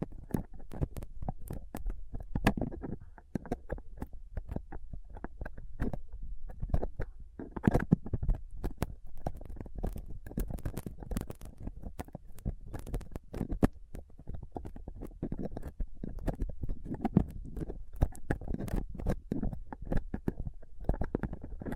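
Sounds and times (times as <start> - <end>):
microphone scraped with a dental pick, tweezers and a cotton swab: 0.0 - 21.7.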